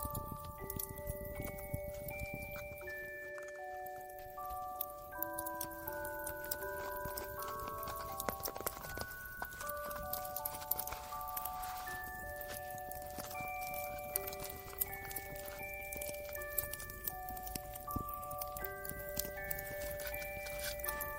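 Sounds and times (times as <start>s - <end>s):
crackling fireplace: 0.0s - 21.1s
music box playing a slow Christmas melody: 0.0s - 21.1s.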